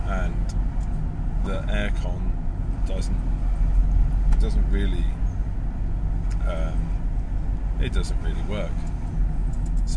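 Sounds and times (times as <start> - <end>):
road noise inside an old car with the windows open: 0.0 - 9.9
speech: 1.4 - 3.6, 4.4 - 5.2, 6.4 - 7.0, 7.8 - 8.9.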